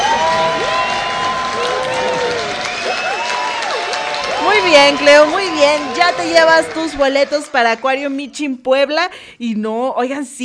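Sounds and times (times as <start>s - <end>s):
audience applause and cheering: 0.0s - 8.4s
speech: 4.7s - 10.4s.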